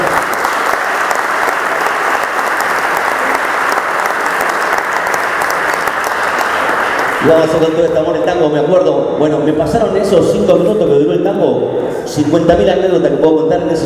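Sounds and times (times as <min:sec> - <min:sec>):
audience applause at a tango event opening: 0:00.0 - 0:07.9
speech: 0:07.2 - 0:13.8.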